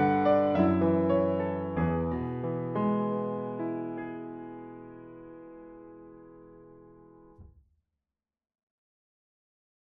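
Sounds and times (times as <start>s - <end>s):
Black Grand MkII grand piano ambient: 0.0s - 7.5s.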